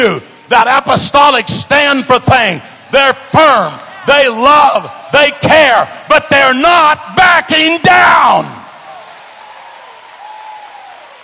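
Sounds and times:
speech: 0:00.0 - 0:08.6
audience clapping hands: 0:08.8 - 0:11.2.

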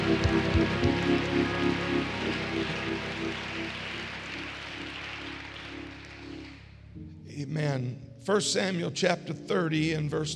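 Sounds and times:
audience clapping: 0:00.0 - 0:06.8
speech: 0:07.4 - 0:10.3.

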